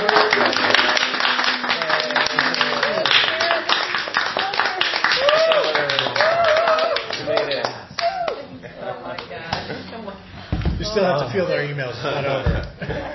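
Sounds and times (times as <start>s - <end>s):
audience applause: 0.0s - 8.4s
laughter: 8.3s - 10.3s, 11.6s - 13.1s
speech: 11.2s - 13.1s.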